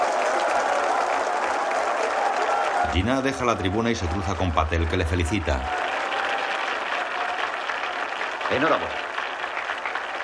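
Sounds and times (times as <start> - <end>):
crowd of Indians applauding in a large tent: 0.0 - 10.2
speech: 2.9 - 5.8, 8.5 - 9.0.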